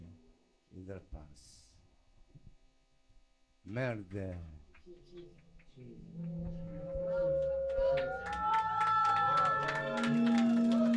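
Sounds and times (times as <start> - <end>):
speech: 0.8 - 1.7, 3.6 - 8.4
studio audience applause: 7.7 - 10.9.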